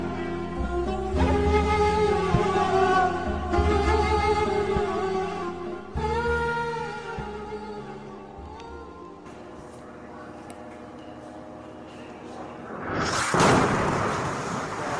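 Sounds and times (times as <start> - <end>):
steady tonal background: 0.0 - 13.2
artillery shelling as a radio drama effect: 12.9 - 14.9.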